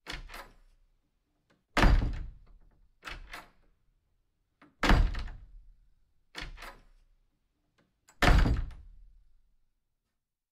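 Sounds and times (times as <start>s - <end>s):
wooden door: 0.0s - 0.8s, 1.4s - 3.9s, 4.5s - 9.3s.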